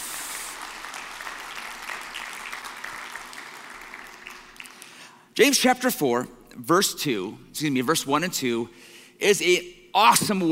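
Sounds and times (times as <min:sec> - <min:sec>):
audience applauding: 0:00.0 - 0:05.0
speech: 0:05.4 - 0:10.5.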